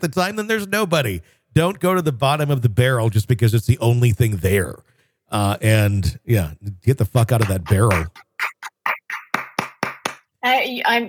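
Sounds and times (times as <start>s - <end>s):
speech: 0.0s - 8.2s, 10.4s - 11.0s
person speaking or laughing: 7.4s - 10.2s
single person clapping: 7.4s - 10.2s.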